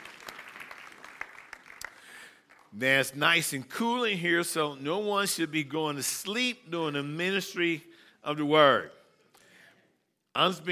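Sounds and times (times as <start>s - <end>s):
audience clapping hands: 0.0s - 2.8s
speech: 2.7s - 9.0s, 10.4s - 10.6s.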